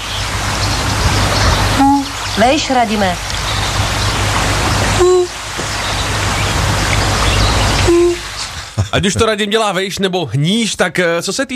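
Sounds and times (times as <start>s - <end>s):
frogs croaking: 0.0s - 9.0s
speech: 2.4s - 3.3s, 8.9s - 11.5s
laughter: 8.4s - 9.5s.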